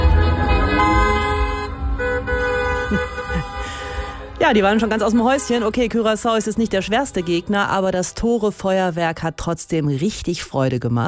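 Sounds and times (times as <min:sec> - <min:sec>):
car horns honking in a celebratory motorcade: 0:00.0 - 0:08.2
busy street din: 0:00.0 - 0:10.5
speech: 0:04.4 - 0:11.0.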